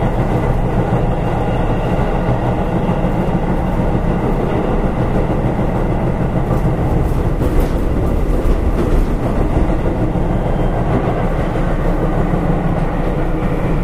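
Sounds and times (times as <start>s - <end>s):
Keihan Electric Railway 5000 series semi express train running rumble: 0.0s - 13.8s.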